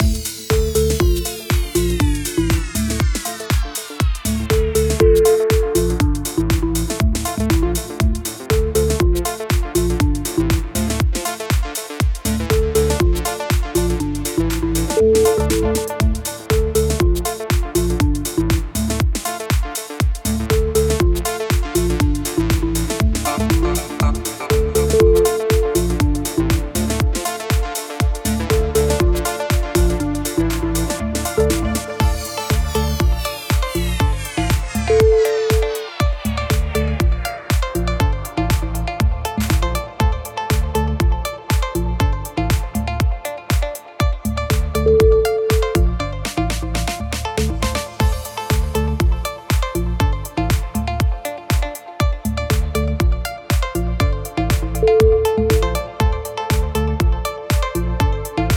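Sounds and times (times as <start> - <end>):
autumn house music: 0.0 - 58.5.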